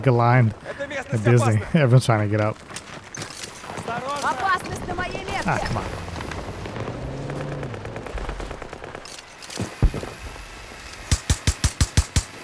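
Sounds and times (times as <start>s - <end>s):
speech: 0.0s - 2.8s, 5.5s - 6.0s
M60 machine gun firing in a video game: 4.2s - 12.4s.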